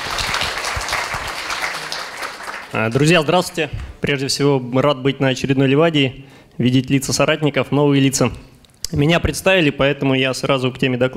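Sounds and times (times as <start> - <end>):
audience applause for a speaker at a conference session: 0.0 - 3.1
speech: 2.7 - 11.1.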